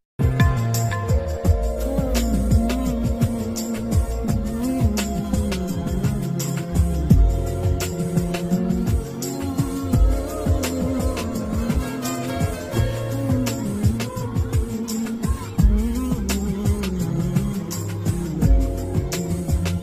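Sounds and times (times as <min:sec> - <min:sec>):
slow instrumental background music ringtone: 0:00.2 - 0:19.8.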